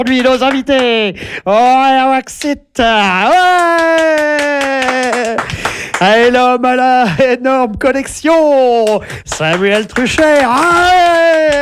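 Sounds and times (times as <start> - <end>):
studio audience applauding at the opening of a French show: 0.0 - 1.1, 2.3 - 6.5, 7.8 - 11.6
speech: 0.0 - 11.6.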